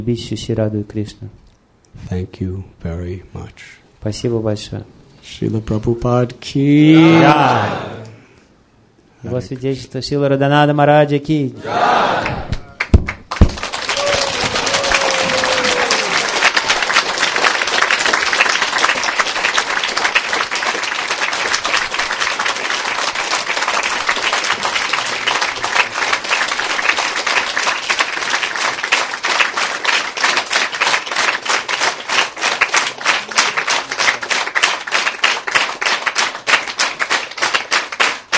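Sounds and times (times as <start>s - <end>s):
speech: 0.0s - 1.4s, 2.0s - 8.0s, 9.2s - 12.0s
crowd applauding: 7.0s - 8.1s, 11.7s - 38.3s.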